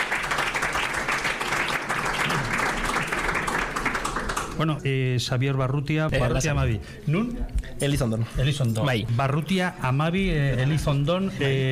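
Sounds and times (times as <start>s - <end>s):
audience applause: 0.0s - 4.7s
speech: 4.6s - 11.7s.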